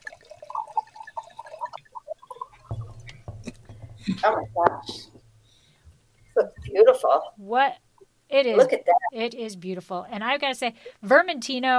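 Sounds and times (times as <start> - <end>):
orange Vermentino wine pouring into a glass: 0.0 - 3.7
speech: 4.1 - 5.1, 6.8 - 11.7.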